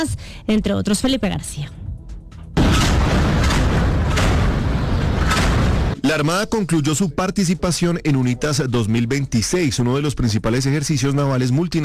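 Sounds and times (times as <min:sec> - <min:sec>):
speech: 0:00.0 - 0:01.8, 0:06.1 - 0:11.8
Colombian Navy live naval gunfire during UNITAS off Peru: 0:02.6 - 0:06.0
heavy sustained rumble: 0:02.6 - 0:06.0.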